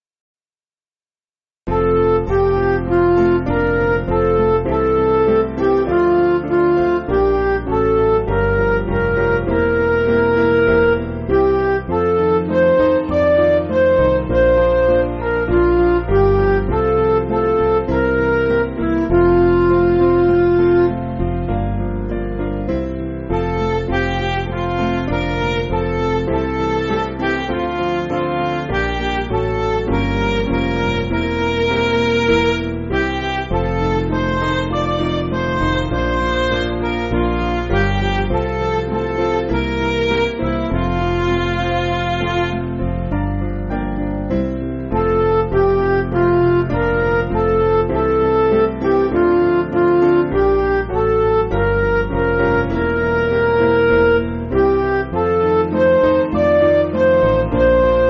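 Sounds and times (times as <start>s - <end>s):
backing music for churches: 1.7s - 58.0s.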